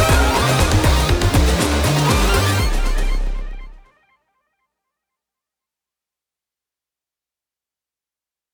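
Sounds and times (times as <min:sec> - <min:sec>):
energetic wave music: 0:00.0 - 0:03.9.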